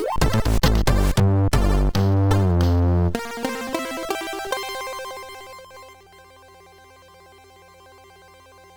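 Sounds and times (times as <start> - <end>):
MOS 6581R2 SID chip music: 0.2 - 6.5.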